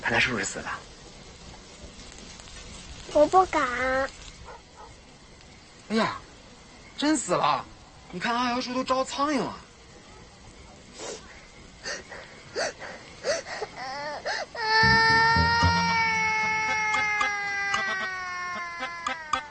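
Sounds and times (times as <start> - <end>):
speech: 0.1 - 1.0, 3.1 - 4.2, 5.9 - 6.2, 7.0 - 9.6
child crying: 12.6 - 19.4.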